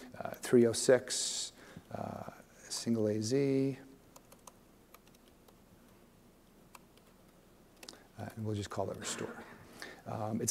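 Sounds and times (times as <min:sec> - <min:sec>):
low hiss: 0:00.0 - 0:10.4
speech: 0:00.2 - 0:03.9, 0:08.4 - 0:10.4
typing a file system name on a computer keyboard: 0:04.1 - 0:05.6.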